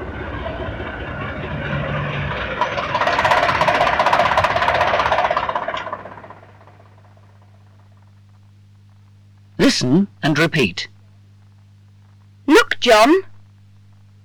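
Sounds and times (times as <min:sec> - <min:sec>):
bus engine arriving: 0:00.0 - 0:07.9
speech: 0:09.8 - 0:10.9, 0:12.8 - 0:13.3.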